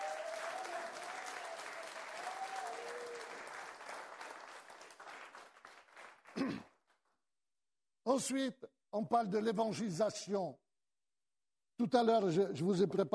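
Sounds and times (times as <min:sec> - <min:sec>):
church congregation applauding: 0:00.0 - 0:06.7
speech: 0:06.4 - 0:06.7, 0:08.1 - 0:10.6, 0:11.8 - 0:13.1.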